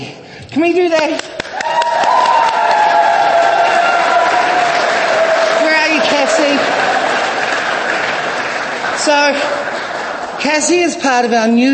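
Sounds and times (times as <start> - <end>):
speech: 0.0 - 2.2, 9.0 - 9.6, 10.4 - 11.7
round of applause for guest speaker: 1.0 - 11.3.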